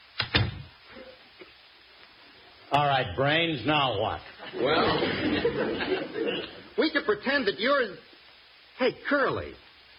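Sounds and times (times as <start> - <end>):
door being shut: 0.2 - 0.7
speech: 2.7 - 8.1, 8.8 - 9.6
laughter: 4.4 - 6.8.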